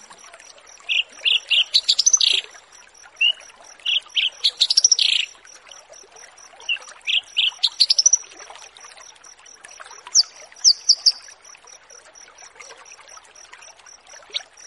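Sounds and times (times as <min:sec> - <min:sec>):
Australasian bushlark chirping song: 0:00.7 - 0:02.6, 0:03.2 - 0:05.4, 0:06.6 - 0:08.2, 0:10.2 - 0:11.3.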